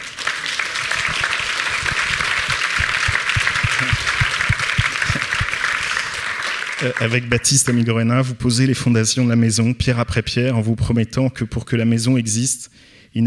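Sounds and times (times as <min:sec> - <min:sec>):
audience applause: 0:00.0 - 0:07.4
speech: 0:06.8 - 0:13.2.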